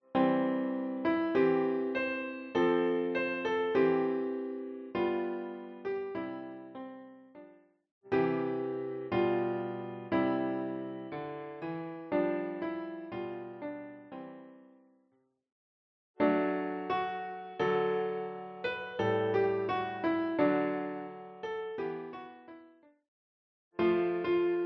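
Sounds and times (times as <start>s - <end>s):
children's songs on piano: 0.0s - 7.2s, 8.1s - 14.7s, 16.2s - 22.6s, 23.8s - 24.6s.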